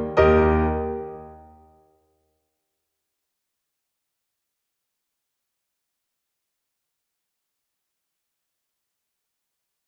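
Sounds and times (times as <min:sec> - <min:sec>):
accompaniment in E flat: 0:00.0 - 0:01.7.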